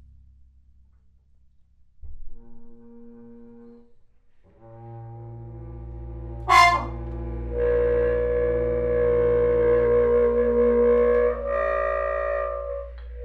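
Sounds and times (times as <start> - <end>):
trombone: 6.0 - 13.2.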